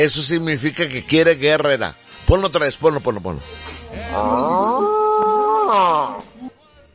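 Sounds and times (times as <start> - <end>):
speech: 0.0 - 4.9, 5.7 - 6.2
bull bellowing: 3.9 - 6.4.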